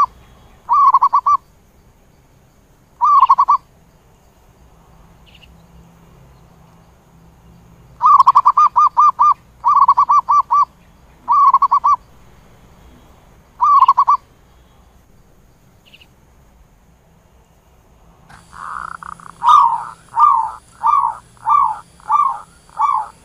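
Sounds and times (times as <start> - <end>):
zebra dove cooing: 0.7 - 1.4, 3.0 - 3.6, 8.0 - 12.0, 13.6 - 14.2, 18.3 - 23.2.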